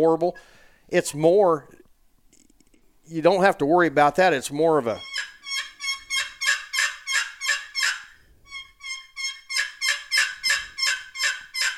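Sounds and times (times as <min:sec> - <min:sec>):
speech: 0:00.0 - 0:01.8, 0:03.1 - 0:05.1
turkey yelps imitated on a turkey call: 0:04.9 - 0:11.7.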